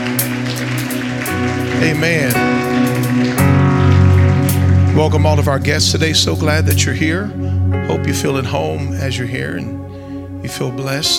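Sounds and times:
audience clapping hands: 0.0 - 7.0
speech: 1.9 - 2.4, 5.0 - 9.8, 10.4 - 11.1.

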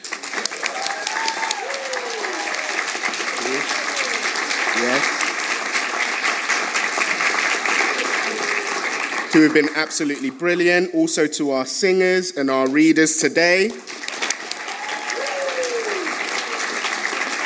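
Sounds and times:
audience applause for a brass band: 0.0 - 10.7, 13.5 - 17.4
faint voices and whoops: 0.5 - 4.9, 7.8 - 8.9, 14.5 - 17.4
speech: 9.4 - 13.9.

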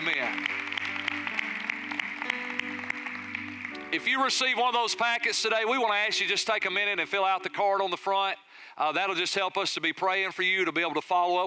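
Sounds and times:
audience applause: 0.0 - 4.8
speech: 3.9 - 11.4.

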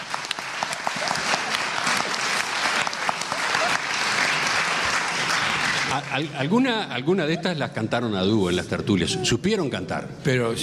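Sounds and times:
audience applause for a singer: 0.0 - 6.6
speech: 6.0 - 10.6.

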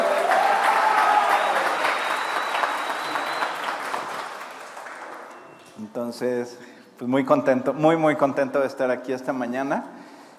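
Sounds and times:
voices and whoops: 0.0 - 3.2
audience applause: 0.0 - 5.7
speech: 6.1 - 10.0.

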